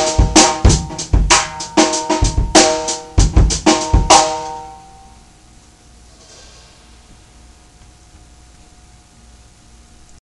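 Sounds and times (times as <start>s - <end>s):
funk groove drums with an electric band: 0.0s - 4.6s.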